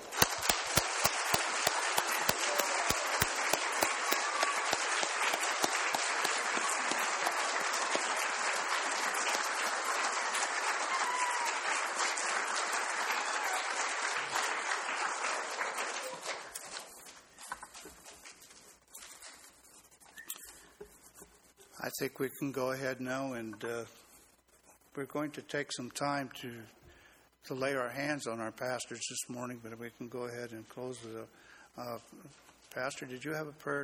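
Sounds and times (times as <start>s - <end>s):
audience applauding: 0.0s - 17.8s
speech: 22.0s - 24.0s, 25.0s - 26.8s, 27.5s - 33.8s.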